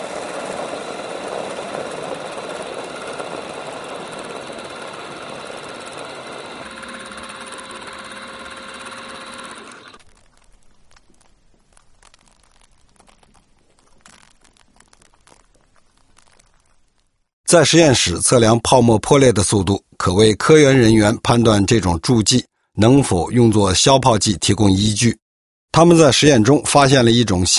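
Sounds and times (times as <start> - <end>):
laboratory stirring rod mixer running: 1.3 - 10.0
faint clicks and rustling: 6.7 - 17.3
speech: 17.5 - 27.5.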